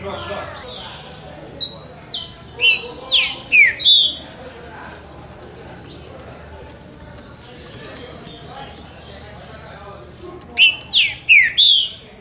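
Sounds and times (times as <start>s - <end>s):
green-winged saltator singing rich slurred whistled notes: 0.6s - 4.2s, 10.6s - 12.2s.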